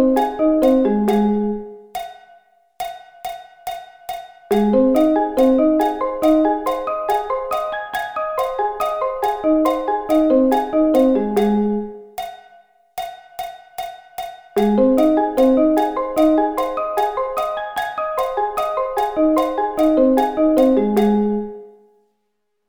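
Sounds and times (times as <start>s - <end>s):
A flat arpeggio inversions: 0.0s - 1.8s, 4.5s - 12.1s, 14.6s - 21.7s.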